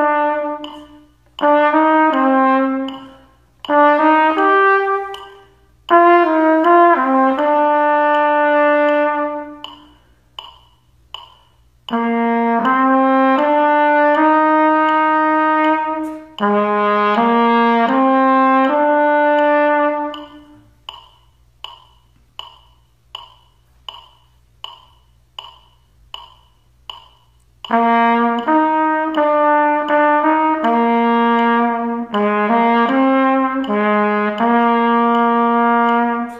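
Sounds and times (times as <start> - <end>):
trumpet: 0.0 - 9.9, 11.9 - 20.8, 27.7 - 36.3.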